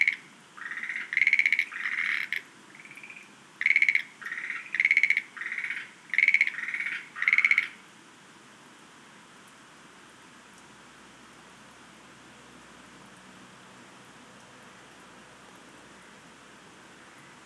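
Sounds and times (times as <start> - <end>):
Schlegel's green tree frog calling: 0.0 - 7.8.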